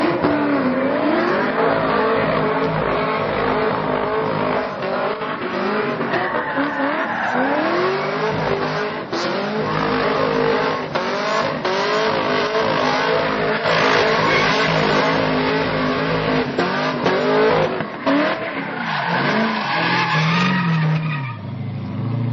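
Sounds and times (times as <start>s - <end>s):
tire: 0.0s - 22.3s.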